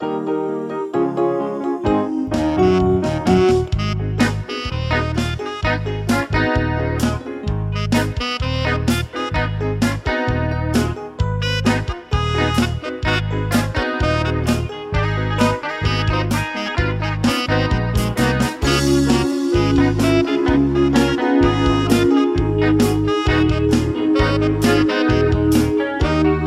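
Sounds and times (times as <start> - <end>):
instrumental music: 0.0 - 26.4.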